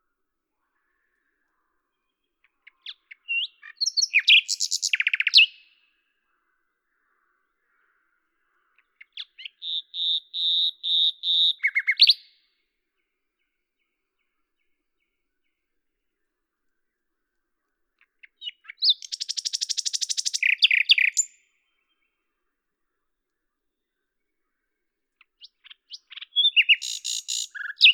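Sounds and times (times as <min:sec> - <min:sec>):
Common nightingale singing: 0:00.8 - 0:12.5, 0:18.0 - 0:22.3, 0:23.8 - 0:27.9.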